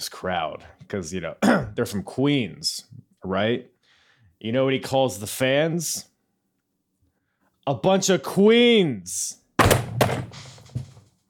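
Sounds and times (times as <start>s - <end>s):
speech: 0.2s - 3.8s, 4.4s - 6.1s, 7.7s - 10.5s
punchy drum hits of a rim shot sting: 9.6s - 11.0s.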